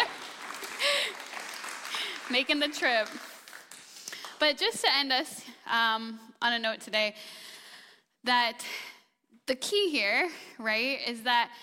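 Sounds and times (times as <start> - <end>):
round of applause: 0.0 - 4.4
speech: 2.3 - 3.3, 4.4 - 7.4, 8.2 - 8.9, 9.5 - 11.6.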